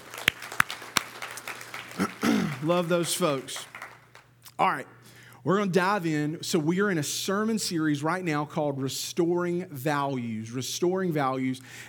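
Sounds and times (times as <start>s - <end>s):
audience applause for volunteer team: 0.0s - 2.7s, 3.3s - 4.3s
speech: 2.6s - 3.7s, 4.6s - 11.8s.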